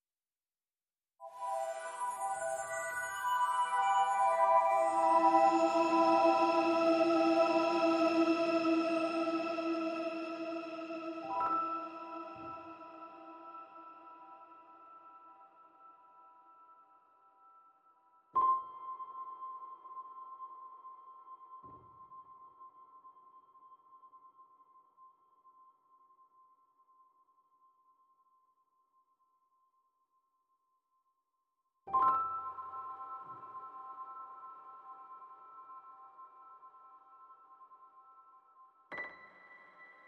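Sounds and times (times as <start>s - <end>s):
piano: 1.2s - 17.0s, 18.4s - 22.5s, 31.9s - 40.0s
synth pads: 3.2s - 14.5s.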